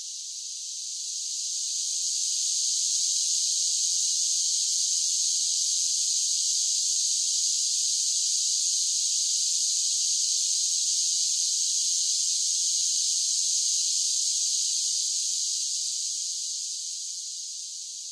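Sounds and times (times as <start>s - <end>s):
large groups of cicadas singing together: 0.0s - 18.1s.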